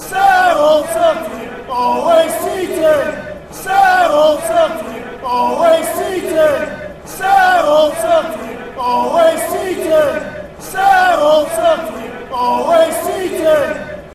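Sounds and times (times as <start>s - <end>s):
chanting: 0.0s - 14.1s.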